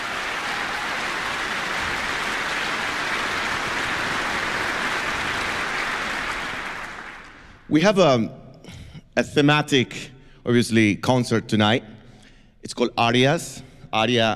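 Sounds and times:
audience applause for orchestra: 0:00.0 - 0:07.7
speech: 0:07.7 - 0:12.0, 0:12.6 - 0:14.3.

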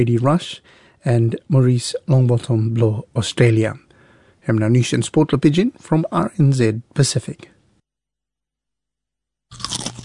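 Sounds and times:
speech: 0:00.0 - 0:03.8, 0:04.4 - 0:07.5
crunch of biting a potato chip: 0:09.5 - 0:10.0.

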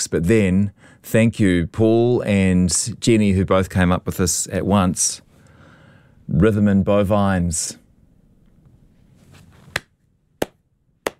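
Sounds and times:
speech: 0:00.0 - 0:05.3, 0:06.3 - 0:07.8
one person clapping: 0:09.7 - 0:11.1.

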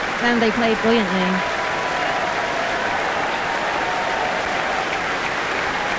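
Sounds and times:
audience applause in concert hall: 0:00.0 - 0:05.9
speech: 0:00.2 - 0:01.5.

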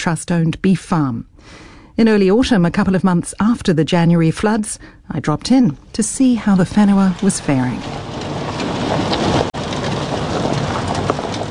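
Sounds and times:
speech: 0:00.0 - 0:08.1
truck engine driving up a rough farm track: 0:05.4 - 0:11.4
buffeting wind: 0:05.9 - 0:11.4.

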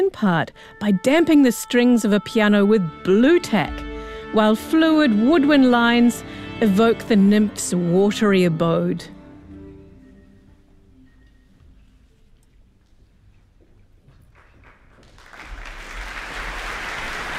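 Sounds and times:
speech: 0:00.0 - 0:09.2
concert audience applause: 0:14.4 - 0:17.3.

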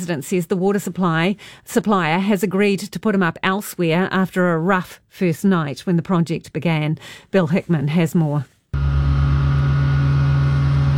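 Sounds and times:
speech: 0:00.0 - 0:09.0
night-time wastewater pipe roadworks machinery droning: 0:08.8 - 0:10.9.

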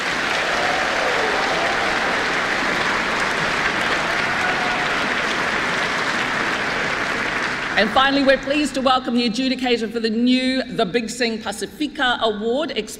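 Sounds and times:
audience applause at a choral awards event: 0:00.0 - 0:08.7
speech: 0:07.8 - 0:12.9.

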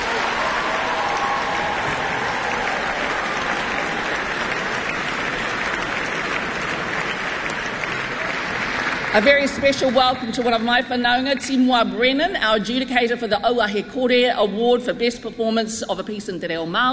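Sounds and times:
audience applause: 0:00.0 - 0:10.6
speech: 0:09.2 - 0:16.9.

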